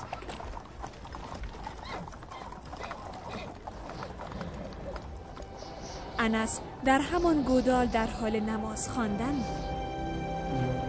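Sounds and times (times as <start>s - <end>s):
horse hooves clip-clopping as a rider pulls the reins: 0.0s - 6.1s
speech: 6.2s - 9.8s.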